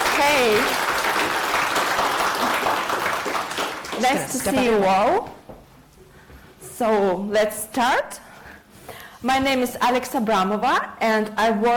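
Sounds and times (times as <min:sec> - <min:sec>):
audience applause: 0:00.0 - 0:04.7
speech: 0:04.0 - 0:05.4, 0:06.8 - 0:08.2, 0:09.2 - 0:11.7.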